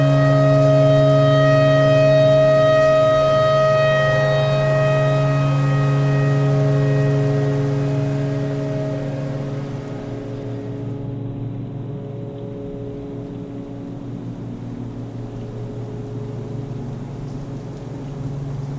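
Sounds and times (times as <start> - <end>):
tornado siren: 0.0 - 11.2.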